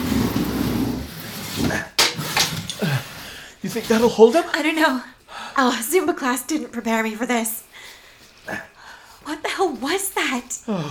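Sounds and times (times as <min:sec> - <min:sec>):
file cabinet pushed in front of a door: 0:00.0 - 0:02.7
speech: 0:03.6 - 0:07.7, 0:08.5 - 0:10.9.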